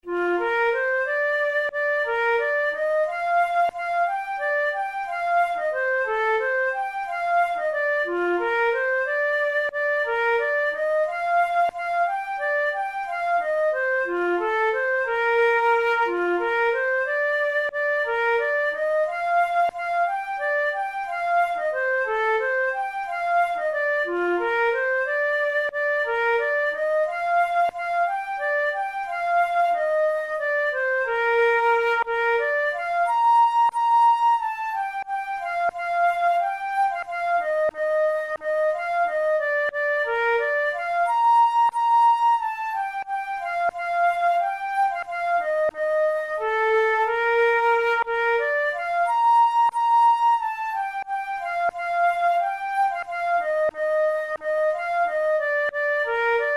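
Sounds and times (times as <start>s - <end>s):
flute: 0.0s - 56.5s.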